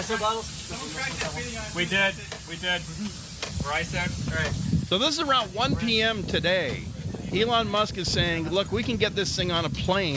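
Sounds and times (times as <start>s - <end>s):
air hissing from a depressurizing capsule: 0.0s - 7.0s
speech: 0.0s - 10.1s
voices: 0.0s - 10.1s.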